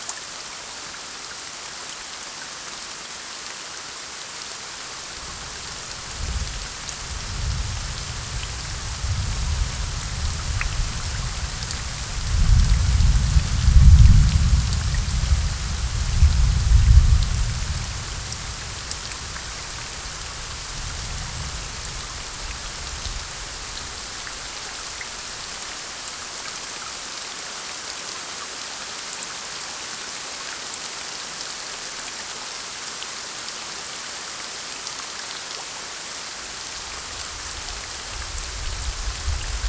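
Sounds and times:
raindrops: 4.6 - 27.2, 36.4 - 39.6
distant thunder: 5.0 - 25.9.

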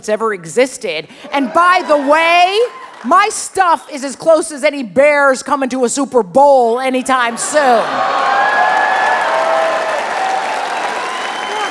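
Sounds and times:
speech: 0.0 - 8.3
audience applause at a radio show: 7.8 - 11.6.

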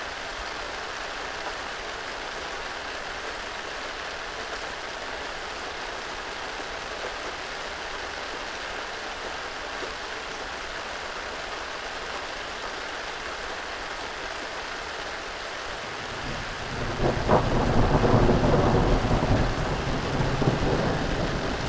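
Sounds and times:
rain: 0.0 - 21.6
thunder: 16.1 - 21.6.

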